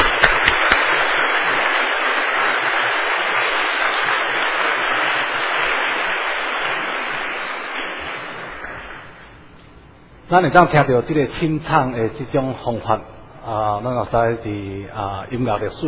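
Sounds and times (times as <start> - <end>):
warm audience applause: 0.0 - 7.6
speech: 10.3 - 15.8.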